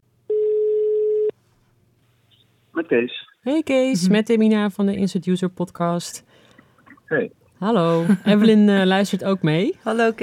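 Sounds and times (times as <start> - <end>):
phone call ringback tone: 0.3 - 1.3
speech: 2.8 - 6.4, 7.1 - 10.2.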